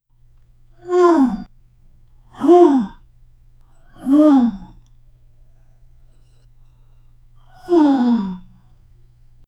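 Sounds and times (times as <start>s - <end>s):
long drawn-out ahhh of effort: 0.8s - 1.5s, 2.3s - 3.1s, 3.8s - 4.9s, 7.4s - 8.8s.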